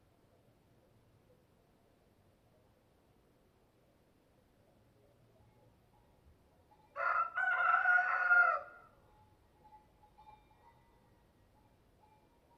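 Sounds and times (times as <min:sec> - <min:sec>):
rooster crowing cock-a-doodle-doo: 0:07.0 - 0:08.9.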